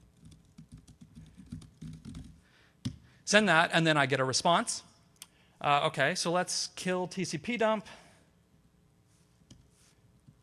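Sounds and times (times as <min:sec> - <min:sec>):
typing on a computer keyboard into an OpenSSL connection: 0:00.1 - 0:02.4
speech: 0:03.3 - 0:04.9, 0:05.6 - 0:08.0.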